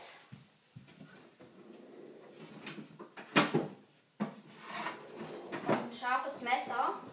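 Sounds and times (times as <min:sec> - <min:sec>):
cupboard opening: 0:01.0 - 0:06.1
speech: 0:06.0 - 0:07.1.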